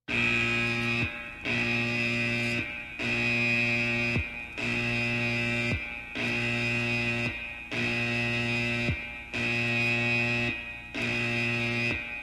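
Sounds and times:
navy alarm: 0:00.1 - 0:12.2.

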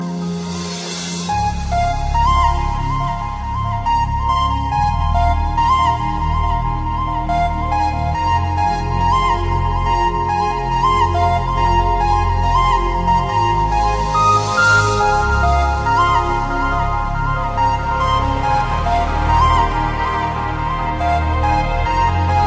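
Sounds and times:
summer dubstep music: 0:00.0 - 0:22.4.

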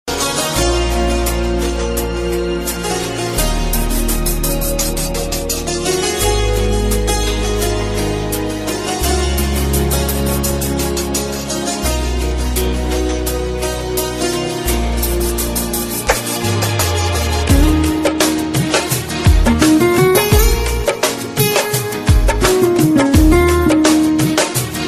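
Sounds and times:
romantic Indian music: 0:00.1 - 0:24.8.

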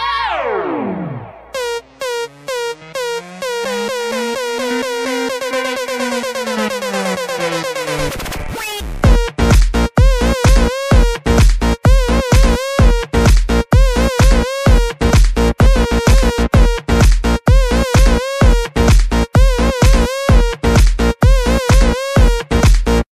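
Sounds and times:
house music: 0:00.2 - 0:23.1.

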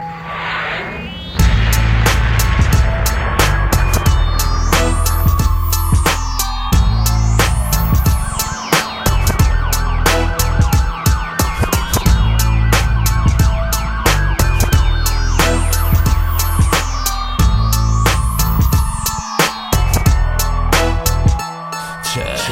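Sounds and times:
Albanian hip hop beat: 0:01.3 - 0:22.4.

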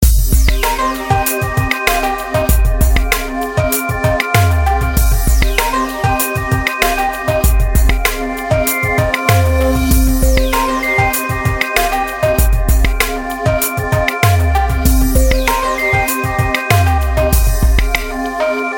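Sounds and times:
corporate music: 0:00.0 - 0:18.7.

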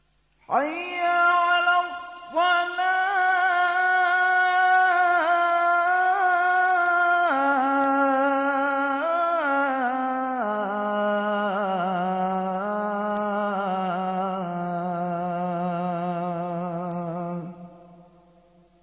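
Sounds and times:
Javanese call to prayer: 0:00.5 - 0:18.3.

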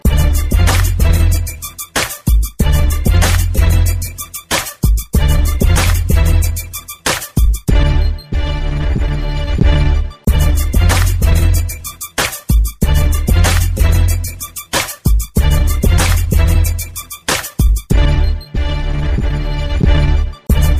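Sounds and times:
hip hop music: 0:00.0 - 0:20.7.

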